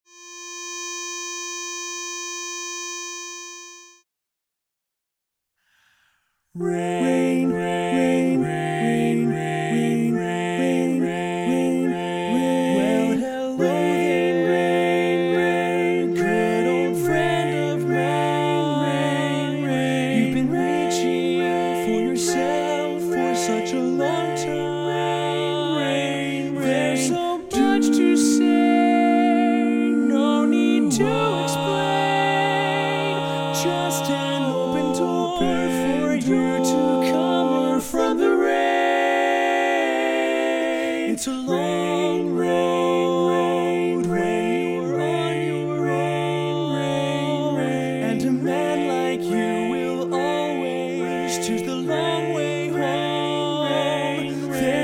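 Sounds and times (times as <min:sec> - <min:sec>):
baritone voice: 0:06.6 - 0:54.8
chorus singing: 0:06.6 - 0:54.8.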